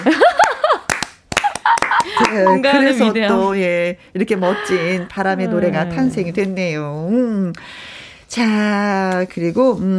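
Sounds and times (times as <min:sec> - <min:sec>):
speech: 0:00.0 - 0:00.3, 0:02.4 - 0:09.9
hands clapping: 0:00.0 - 0:02.6
laughter: 0:01.4 - 0:03.0, 0:04.4 - 0:06.6.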